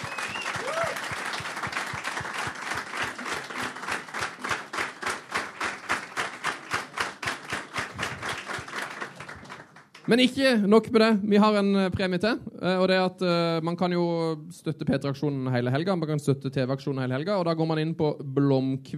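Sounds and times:
audience applause: 0:00.0 - 0:10.1
speech: 0:10.1 - 0:18.9.

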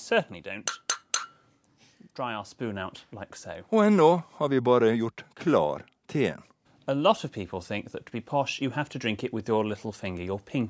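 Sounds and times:
speech: 0:00.1 - 0:00.8, 0:02.1 - 0:10.6
teaspoon clinking against a cup: 0:00.7 - 0:01.4.

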